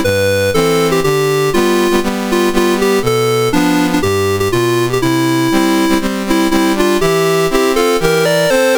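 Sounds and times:
national anthem on a MOS6581R2 sound chip: 0:00.0 - 0:08.7.

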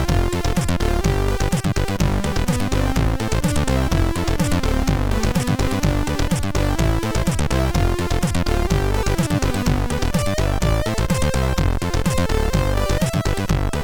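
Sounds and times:
MOS6581R3 sound chip chord: 0:00.0 - 0:13.8.

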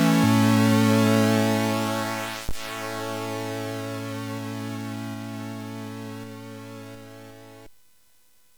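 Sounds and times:
platform game chiptune music on SID CSG8580R5: 0:00.2 - 0:02.4, 0:03.2 - 0:07.4.

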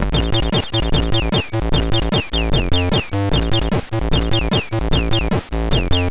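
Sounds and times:
MOS6581R3 SID chip music: 0:00.1 - 0:06.0.

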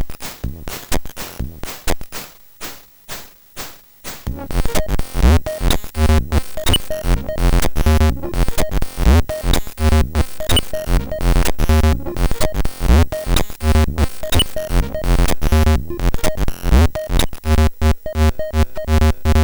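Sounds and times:
electric SID tone from MOS6581R2 chip: 0:04.3 - 0:19.4.

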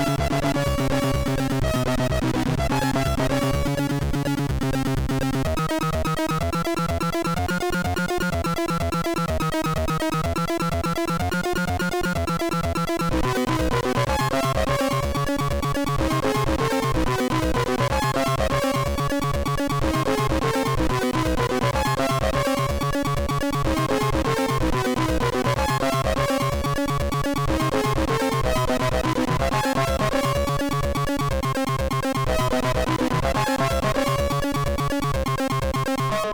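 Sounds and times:
rave techno music on MOS6581R3 sound chip: 0:00.0 - 0:36.2.

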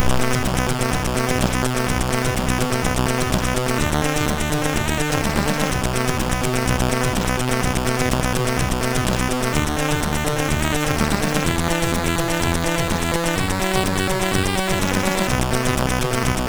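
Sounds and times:
SID MOS6581R2 chiptune: 0:00.0 - 0:16.4.

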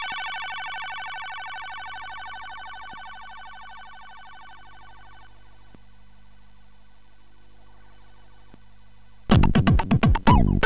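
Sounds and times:
chiptune music on a MOS6581R4 sound chip: 0:09.3 - 0:10.6.

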